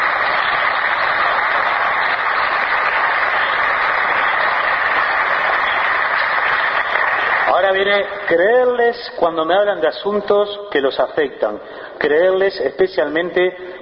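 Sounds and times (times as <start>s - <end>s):
audience clapping: 0.0s - 8.6s
speech: 7.7s - 13.8s.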